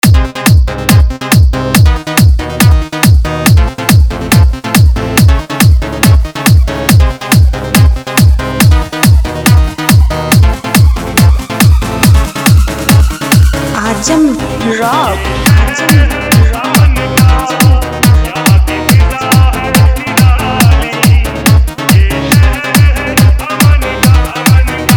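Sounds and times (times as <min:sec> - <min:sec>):
Hindi remix music: 0:00.0 - 0:24.9.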